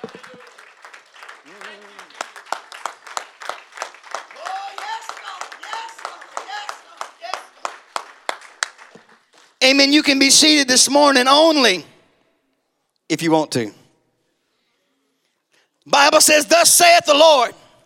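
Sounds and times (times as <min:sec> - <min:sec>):
speech: 0:00.0 - 0:00.4, 0:09.7 - 0:11.9, 0:13.1 - 0:13.8, 0:16.2 - 0:17.6
audience's loud hand clap of praise: 0:00.0 - 0:09.6.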